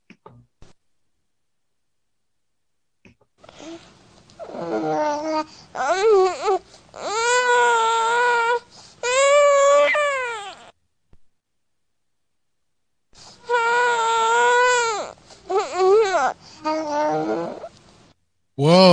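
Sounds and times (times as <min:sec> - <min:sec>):
four-month-old baby boy cooing and wailing: 0:04.4 - 0:10.8, 0:13.4 - 0:17.7.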